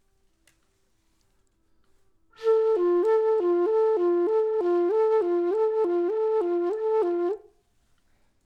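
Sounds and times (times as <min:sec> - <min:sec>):
flute: 0:02.4 - 0:07.6.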